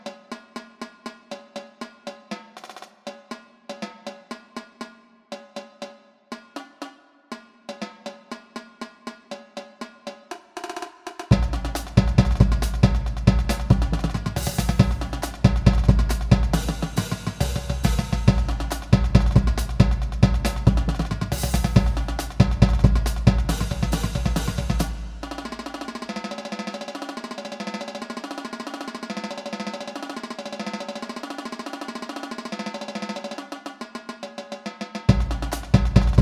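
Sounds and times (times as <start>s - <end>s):
jig music: 11.3s - 26.2s, 35.1s - 36.2s.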